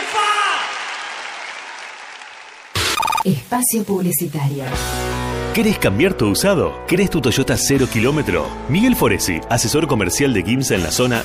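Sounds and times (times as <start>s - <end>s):
audience applause: 0.0s - 3.2s
speech: 3.2s - 5.0s, 5.6s - 11.2s.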